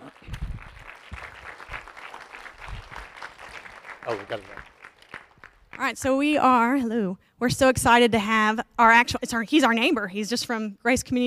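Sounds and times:
audience applause welcoming a speaker: 0.0s - 5.9s
speech: 4.1s - 4.7s, 5.8s - 11.2s.

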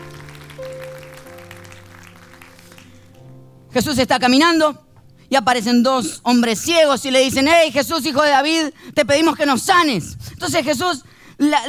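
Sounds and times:
audience applause: 0.0s - 3.3s
speech: 3.8s - 11.6s.

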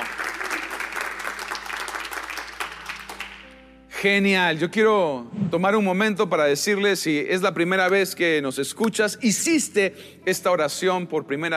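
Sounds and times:
audience applause: 0.0s - 3.6s
speech: 4.0s - 11.5s.

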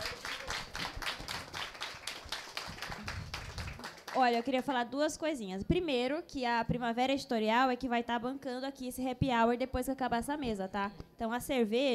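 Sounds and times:
audience applause: 0.0s - 4.4s
speech: 4.2s - 11.9s.

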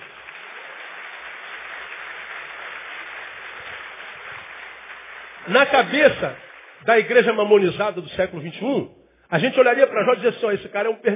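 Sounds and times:
audience applause: 0.0s - 7.6s
speech: 5.4s - 11.1s.

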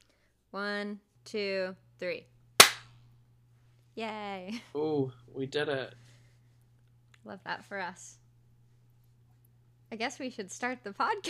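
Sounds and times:
low steady hum: 0.0s - 11.2s
speech: 0.5s - 2.3s, 4.0s - 6.1s, 7.2s - 8.2s, 9.9s - 11.2s
single hand clap: 2.6s - 2.9s.

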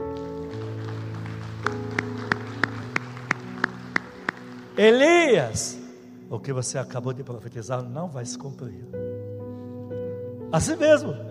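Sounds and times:
audience applauding: 0.0s - 5.5s
speech: 4.8s - 9.1s, 10.5s - 11.2s.

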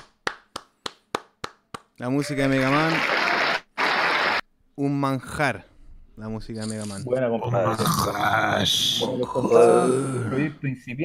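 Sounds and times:
applause: 0.2s - 4.4s
speech: 2.0s - 3.3s, 4.8s - 11.0s.

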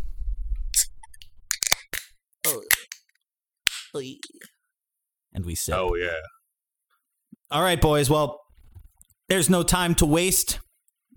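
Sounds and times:
beer can cracking open: 0.8s - 3.1s
voice-like sounds: 2.4s - 2.8s, 3.9s - 4.6s, 5.6s - 6.4s
speech: 3.9s - 4.6s, 5.3s - 6.4s, 7.5s - 8.4s, 9.3s - 10.6s.

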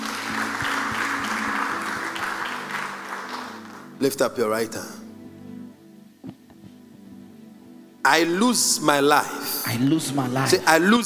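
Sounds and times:
audience clapping: 0.0s - 4.2s
speech: 4.0s - 5.0s, 8.1s - 11.0s.

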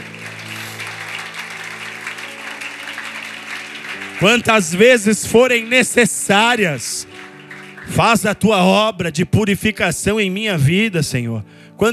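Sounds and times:
audience applauding: 0.0s - 8.7s
speech: 4.2s - 7.2s, 7.9s - 11.9s.

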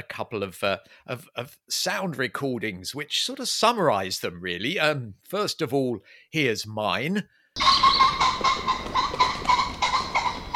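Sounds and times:
speech: 0.0s - 9.3s
common pheasant calling: 7.6s - 10.5s.

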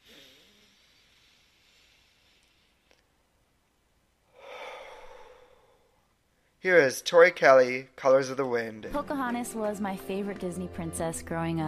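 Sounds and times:
deep breath in through the nose, out the mouth: 0.0s - 3.1s, 4.3s - 6.6s
speech: 6.6s - 11.6s.

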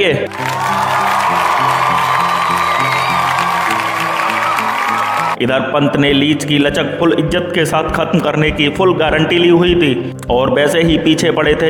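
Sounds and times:
speech: 0.0s - 0.9s, 5.4s - 11.6s
crowd applause and cheering: 0.0s - 5.4s
steady musical tone: 0.0s - 11.6s.

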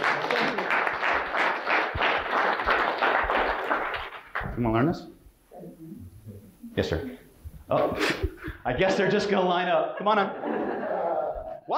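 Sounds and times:
laughter: 0.0s - 1.0s, 7.7s - 11.7s
audience applause: 0.0s - 4.5s
speech: 4.6s - 5.2s, 6.8s - 10.6s.

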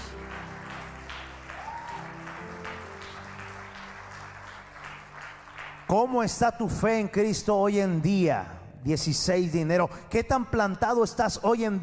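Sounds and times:
audience applause: 0.0s - 6.2s
speech: 5.9s - 11.8s.

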